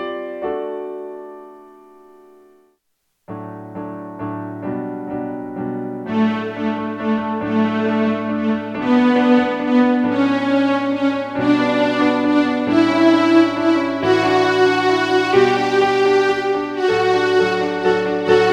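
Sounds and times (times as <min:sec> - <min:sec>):
alto instrumental: 0:06.0 - 0:18.5.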